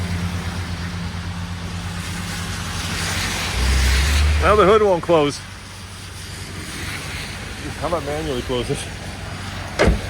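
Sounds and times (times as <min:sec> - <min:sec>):
car engine as it is shifted into drive and pulls out: 0:00.0 - 0:10.0
speech: 0:04.4 - 0:05.5, 0:07.8 - 0:09.1.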